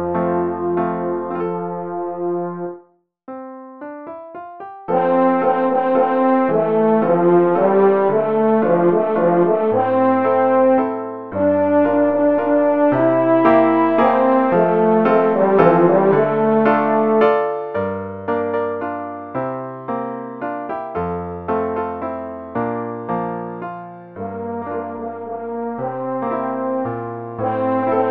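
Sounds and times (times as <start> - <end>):
horn: 0.0 - 2.9, 4.9 - 18.6, 23.6 - 28.0
piano: 0.0 - 28.0.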